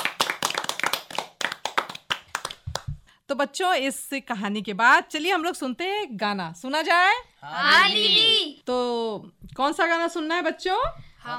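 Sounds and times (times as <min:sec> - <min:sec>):
applause: 0:00.0 - 0:03.0
speech: 0:03.3 - 0:11.3.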